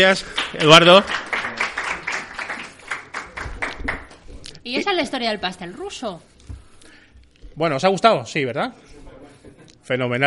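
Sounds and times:
speech: 0.0 - 1.3, 4.7 - 6.3, 7.6 - 10.2
audience applause: 0.0 - 4.2.

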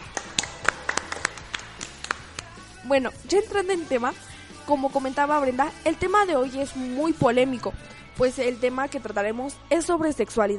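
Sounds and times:
applause: 0.0 - 2.5
speech: 2.8 - 10.5.

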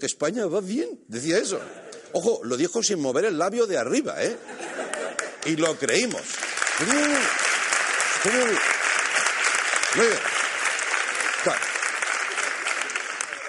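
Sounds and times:
speech: 0.0 - 4.8, 5.4 - 7.4, 8.2 - 8.7, 10.0 - 10.4, 11.4 - 11.7
laughter: 1.4 - 2.2, 4.3 - 5.8, 12.1 - 13.4
audience applause: 4.8 - 13.4.

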